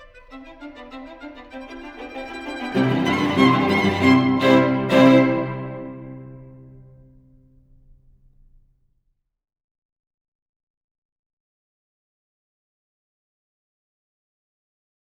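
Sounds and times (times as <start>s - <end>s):
string quartet playing presto: 0.1s - 7.0s.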